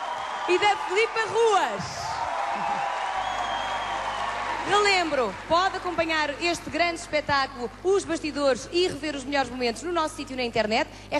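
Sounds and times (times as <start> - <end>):
theater audience applause: 0.0 - 6.7
speech: 0.5 - 2.0, 2.6 - 3.0, 4.7 - 11.1.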